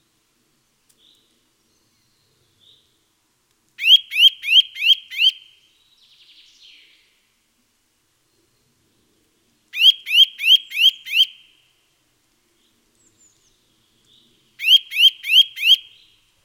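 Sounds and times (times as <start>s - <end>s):
Eurasian nuthatch Sitta europaea calling with loud rising whistles: 3.8s - 5.5s, 9.8s - 11.4s, 14.6s - 16.1s.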